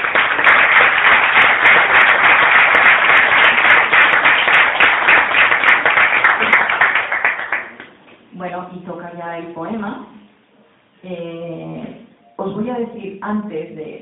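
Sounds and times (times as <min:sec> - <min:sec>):
crowd applauding: 0:00.0 - 0:07.9
speech: 0:09.2 - 0:10.2, 0:11.0 - 0:11.7, 0:12.4 - 0:14.0.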